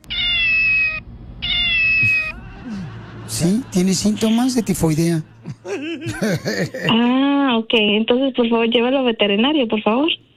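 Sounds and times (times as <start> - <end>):
cat meowing: 0.0 - 2.4
laughter: 2.0 - 7.0
speech: 3.4 - 10.3.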